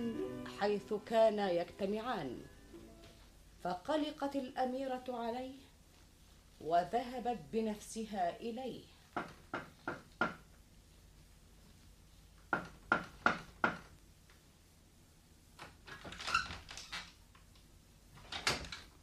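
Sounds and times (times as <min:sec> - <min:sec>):
speech: 0:00.0 - 0:02.5, 0:03.6 - 0:05.7, 0:06.6 - 0:09.7
knocking on a door as a sound effect in an Arabic drama: 0:09.2 - 0:10.4, 0:12.5 - 0:13.9.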